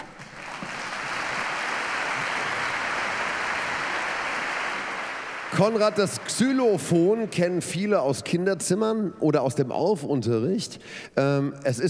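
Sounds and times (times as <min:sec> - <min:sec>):
audience applause: 0:00.0 - 0:07.3
speech: 0:05.6 - 0:11.8.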